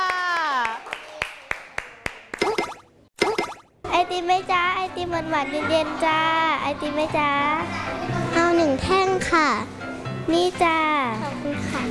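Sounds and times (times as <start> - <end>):
applause from a class of children: 0.0 - 2.2
speech: 4.1 - 11.8.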